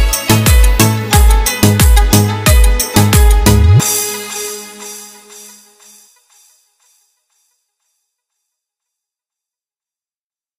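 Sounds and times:
piano music: 0:00.0 - 0:05.8.

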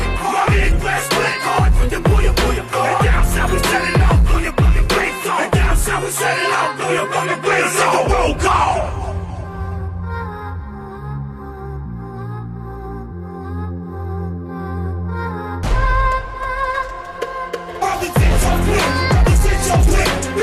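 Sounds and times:
music beat: 0:00.0 - 0:10.1, 0:15.6 - 0:20.4.

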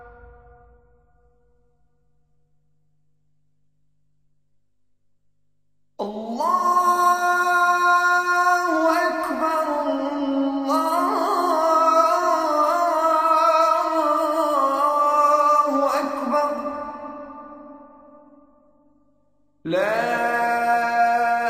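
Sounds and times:
azan call to prayer: 0:06.0 - 0:18.2, 0:19.7 - 0:21.4.

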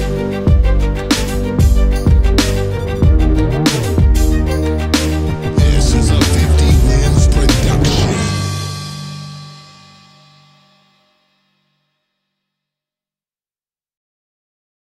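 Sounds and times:
hard aggressive string battle music: 0:00.0 - 0:10.8.

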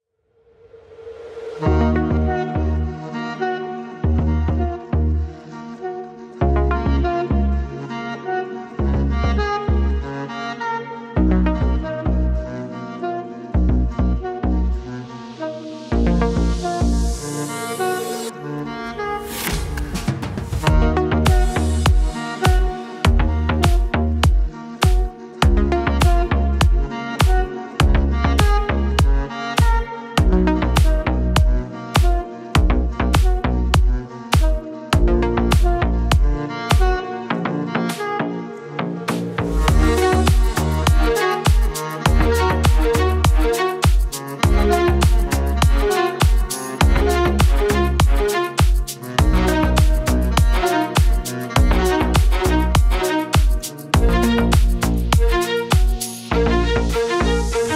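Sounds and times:
saxophone remix: 0:01.0 - 0:57.7.

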